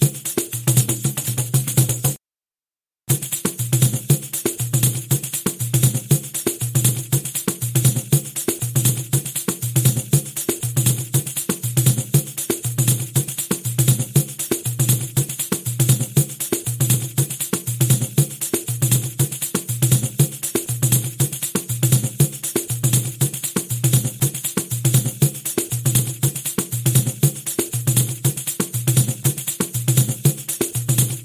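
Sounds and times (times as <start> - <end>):
pandeiro playing at 119 bpm: 0.0 - 2.2, 3.1 - 31.2.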